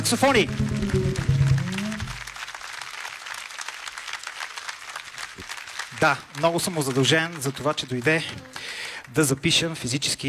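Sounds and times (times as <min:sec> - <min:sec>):
speech: 0:00.0 - 0:01.2, 0:06.0 - 0:10.2
short sustained musical tone: 0:00.0 - 0:02.2
audience applause: 0:00.0 - 0:09.8.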